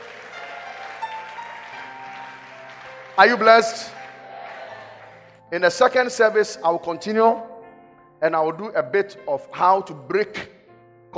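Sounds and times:
audience clapping hands: 0:00.0 - 0:05.4
speech: 0:03.2 - 0:04.0, 0:05.5 - 0:07.5, 0:08.2 - 0:10.5.

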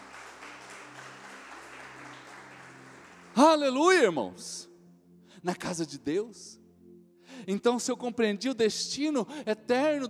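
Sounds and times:
audience applauding: 0:00.0 - 0:03.6
speech: 0:03.4 - 0:04.7, 0:05.4 - 0:06.6, 0:07.4 - 0:10.0.

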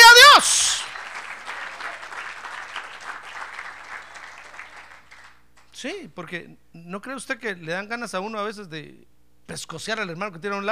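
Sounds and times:
audience applause: 0:00.0 - 0:05.4
speech: 0:05.8 - 0:10.7.

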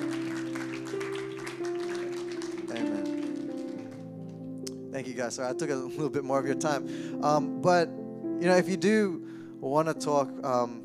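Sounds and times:
audience applause: 0:00.0 - 0:04.3
speech: 0:05.0 - 0:10.8.

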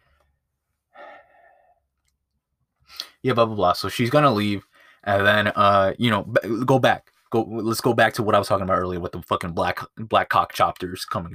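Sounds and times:
person breathing: 0:00.0 - 0:01.8, 0:04.6 - 0:05.0
speech: 0:03.2 - 0:11.3.

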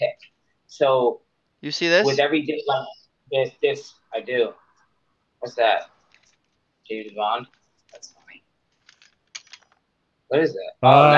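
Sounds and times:
speech: 0:00.8 - 0:04.6, 0:05.4 - 0:05.9, 0:06.9 - 0:08.2, 0:10.3 - 0:11.1
metallic clicks and rattles from handling a small lockpick kit: 0:08.7 - 0:09.8.

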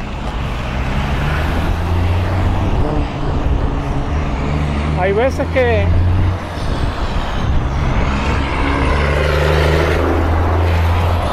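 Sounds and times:
truck passing by: 0:00.0 - 0:11.3
speech: 0:05.1 - 0:06.0.

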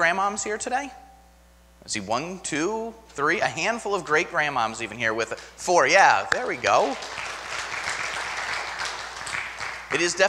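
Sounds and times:
speech: 0:00.0 - 0:01.1, 0:01.8 - 0:07.3, 0:09.9 - 0:10.2
church audience applause: 0:06.4 - 0:10.2.

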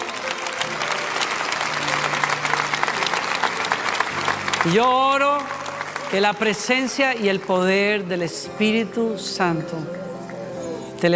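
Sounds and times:
crowd applause: 0:00.0 - 0:08.2
speech: 0:04.6 - 0:10.0.

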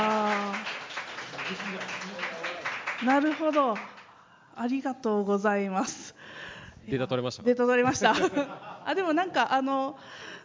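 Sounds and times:
scattered audience applause: 0:00.0 - 0:04.1
speech: 0:03.0 - 0:03.9, 0:04.6 - 0:06.2, 0:06.9 - 0:10.3.

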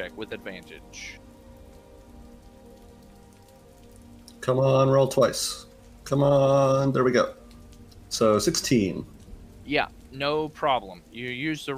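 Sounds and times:
speech: 0:00.0 - 0:01.3, 0:04.4 - 0:07.4, 0:08.1 - 0:11.7
heavy storm rain: 0:00.0 - 0:11.7.

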